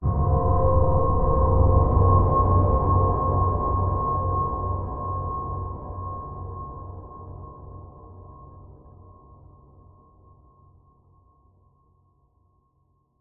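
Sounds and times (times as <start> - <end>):
dark ominous horror hit: 0.0 - 6.4.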